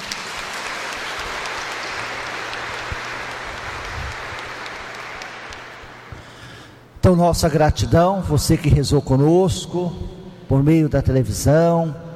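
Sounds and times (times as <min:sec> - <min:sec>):
audience applause: 0:00.0 - 0:06.4
speech: 0:07.1 - 0:12.0.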